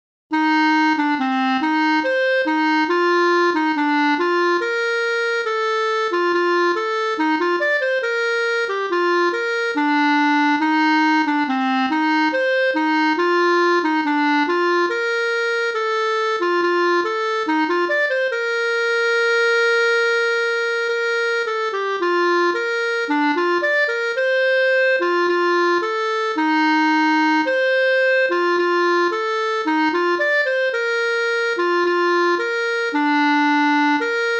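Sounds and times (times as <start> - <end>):
old Nidwalden instrumental yodel tune: 0.3 - 34.3.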